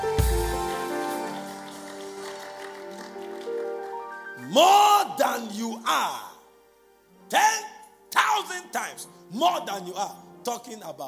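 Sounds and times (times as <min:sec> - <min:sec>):
audience clapping: 0:00.0 - 0:04.4
speech: 0:04.5 - 0:06.3, 0:07.3 - 0:07.7, 0:08.5 - 0:11.0.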